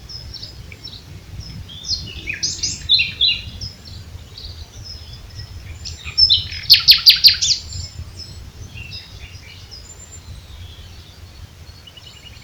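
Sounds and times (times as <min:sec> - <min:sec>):
common nightingale singing: 0:00.0 - 0:12.4.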